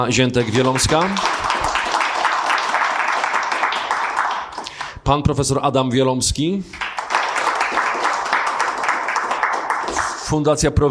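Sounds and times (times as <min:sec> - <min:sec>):
speech: 0:00.0 - 0:01.5, 0:05.1 - 0:06.9, 0:10.3 - 0:10.8
audience applause: 0:00.4 - 0:05.0, 0:06.7 - 0:10.3.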